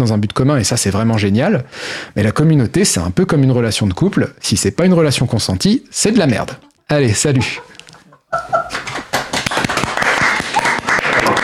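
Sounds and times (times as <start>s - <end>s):
speech: 0.0s - 7.7s
laughter: 6.2s - 11.4s
applause: 8.8s - 11.4s.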